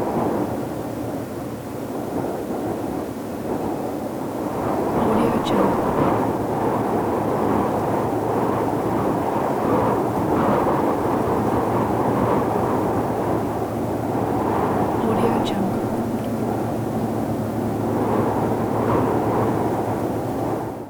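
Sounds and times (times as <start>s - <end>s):
soft whistling wind gusts: 0.1s - 20.8s
distant humming: 4.9s - 6.5s, 13.5s - 20.6s.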